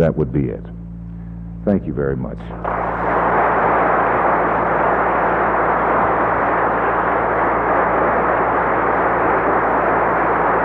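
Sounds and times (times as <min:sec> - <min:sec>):
speech: 0:00.0 - 0:00.8, 0:01.6 - 0:03.8
audience applause: 0:02.6 - 0:10.5.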